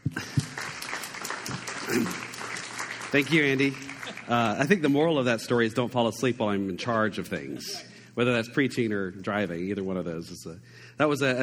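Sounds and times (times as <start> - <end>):
church audience applauding to welcome a speaker: 0.0 - 5.5
speech: 1.9 - 2.2, 3.1 - 11.4.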